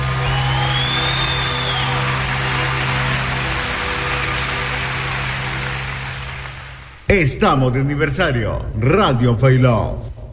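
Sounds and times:
audience applause: 0.0 - 7.1
speech: 7.1 - 10.1.

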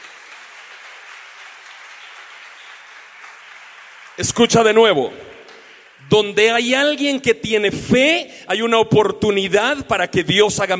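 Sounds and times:
audience applause: 0.0 - 6.1
speech: 4.2 - 5.3, 6.1 - 10.7.

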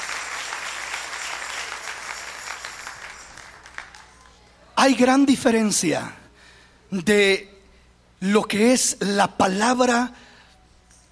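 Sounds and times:
audience applause: 0.0 - 4.5
speech: 4.8 - 6.2, 6.9 - 7.5, 8.2 - 10.3.

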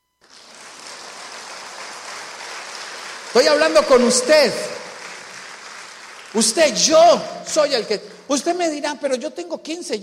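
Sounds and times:
audience applause: 0.2 - 7.2
speech: 3.3 - 4.8, 6.3 - 10.0.

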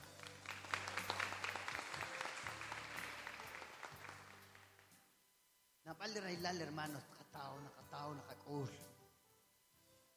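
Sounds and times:
audience applause: 0.0 - 4.9
speech: 5.9 - 8.9.

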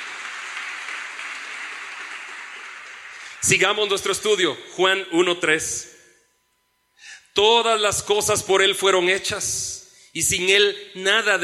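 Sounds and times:
audience applause: 0.0 - 3.6
speech: 3.4 - 6.0, 7.4 - 11.4.

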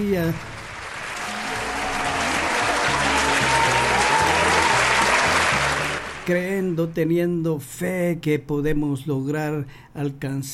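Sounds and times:
speech: 0.0 - 0.5, 6.3 - 10.5
audience applause: 0.0 - 6.7.

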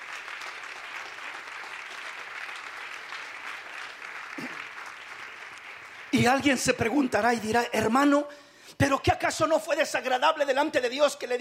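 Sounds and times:
audience applause: 0.0 - 7.0
speech: 6.2 - 11.3.

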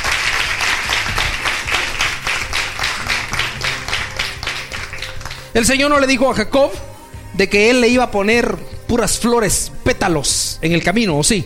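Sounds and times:
audience clapping in a steady rhythmic beat: 0.0 - 5.8
speech: 5.6 - 11.4.

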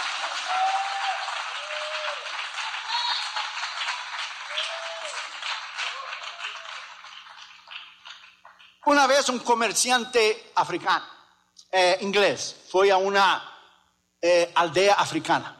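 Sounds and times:
audience applause: 0.0 - 8.8
speech: 0.4 - 0.9, 8.9 - 13.5, 14.2 - 15.5.

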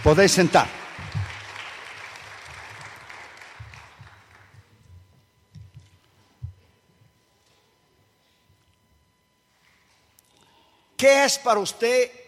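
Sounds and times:
speech: 0.0 - 0.8, 11.0 - 12.2
audience applauding: 0.0 - 4.8.

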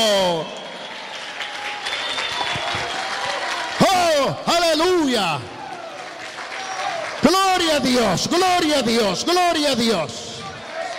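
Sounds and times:
speech: 0.0 - 0.6, 4.2 - 5.6, 7.2 - 10.3
audience applauding: 0.0 - 9.4, 10.4 - 10.9.

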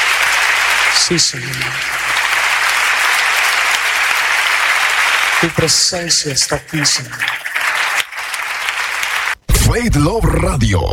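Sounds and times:
crowd applause: 0.0 - 9.4
speech: 1.0 - 2.1, 5.4 - 7.5, 9.7 - 10.9.

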